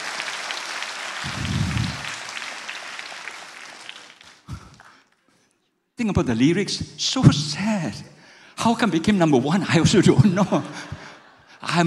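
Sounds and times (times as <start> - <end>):
audience applause: 0.0 - 4.9
speech: 6.0 - 11.0, 11.6 - 11.8.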